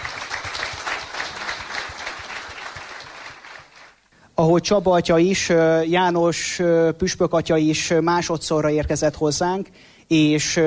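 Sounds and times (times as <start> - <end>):
audience applause: 0.0 - 4.0
speech: 4.4 - 10.6.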